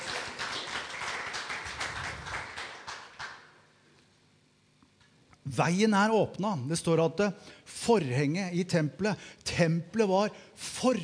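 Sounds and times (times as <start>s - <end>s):
audience applause: 0.0s - 3.5s
speech: 5.6s - 11.0s.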